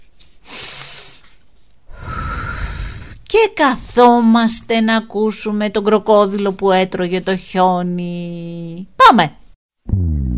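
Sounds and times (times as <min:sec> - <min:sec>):
person breathing in through the nose and out through the mouth in a guided breathing exercise: 0:00.3 - 0:03.2
speech: 0:03.4 - 0:10.2.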